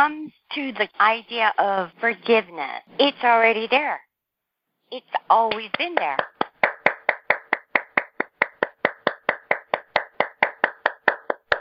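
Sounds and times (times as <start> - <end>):
speech: 0.0 - 4.1, 4.9 - 6.3
one person clapping hands: 5.5 - 11.5.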